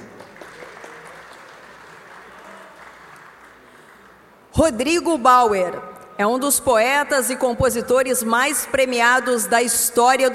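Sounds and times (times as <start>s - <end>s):
crowd applauding: 0.0s - 4.3s
speech: 4.6s - 10.3s.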